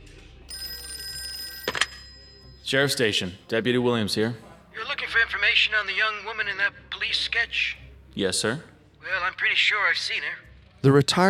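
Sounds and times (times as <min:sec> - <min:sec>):
telephone ringing: 0:00.5 - 0:04.0
speech: 0:02.7 - 0:04.5, 0:05.1 - 0:11.2.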